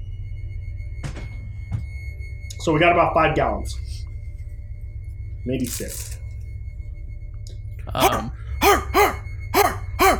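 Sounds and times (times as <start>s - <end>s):
speech: 2.6s - 4.0s, 5.4s - 6.2s, 7.9s - 8.4s
two pit bulls barking: 8.0s - 10.1s.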